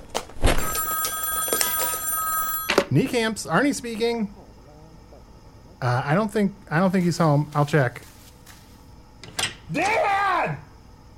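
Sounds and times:
telephone bell ringing: 0.5s - 3.1s
speech: 2.9s - 4.4s, 5.8s - 8.1s, 9.7s - 10.6s.

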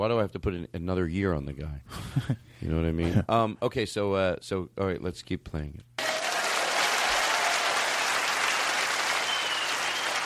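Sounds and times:
speech: 0.0s - 5.9s
audience applause in a played video clip: 6.0s - 10.2s.

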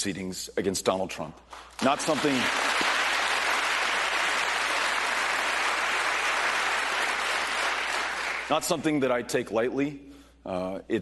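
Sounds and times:
speech: 0.0s - 2.9s, 8.5s - 11.0s
town hall audience applause: 1.8s - 8.5s.

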